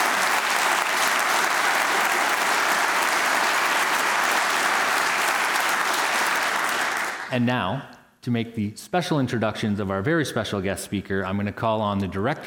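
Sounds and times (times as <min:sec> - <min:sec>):
theater audience applause: 0:00.0 - 0:07.3
speech: 0:07.3 - 0:12.4.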